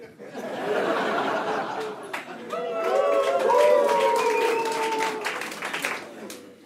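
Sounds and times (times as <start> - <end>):
laughter: 0.0 - 6.4
audience clapping: 1.4 - 6.6
audience cheering with shouts and whoops: 2.4 - 5.7.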